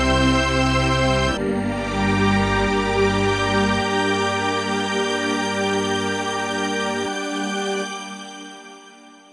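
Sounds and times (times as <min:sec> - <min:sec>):
E-mu Morpheus synthesizer stringed preset: 0:00.0 - 0:07.2.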